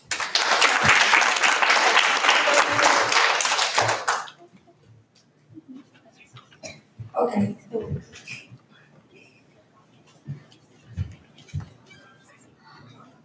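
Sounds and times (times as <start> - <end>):
audience applause: 0.0 - 4.4
speech: 7.2 - 8.3.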